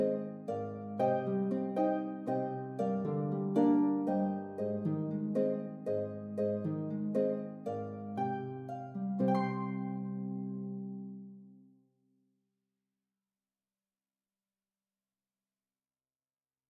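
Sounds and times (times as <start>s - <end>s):
harp melody in C minor: 0.0s - 11.5s.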